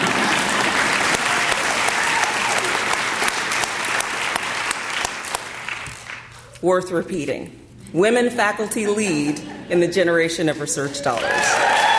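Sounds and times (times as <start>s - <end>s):
audience applause: 0.0s - 6.3s, 11.2s - 11.9s
speech: 6.6s - 11.8s.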